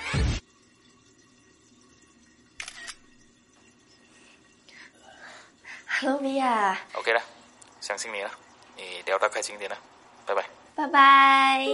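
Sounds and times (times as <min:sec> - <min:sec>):
camera shutter firing as a photo is taken: 0:02.6 - 0:03.0
speech: 0:06.0 - 0:11.7.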